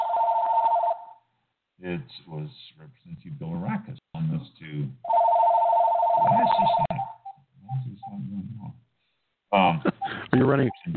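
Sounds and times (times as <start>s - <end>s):
telephone ringing with a pulsing electronic tone: 0.0s - 1.2s, 5.0s - 7.4s
speech: 1.8s - 5.2s, 6.2s - 8.8s, 9.5s - 10.9s.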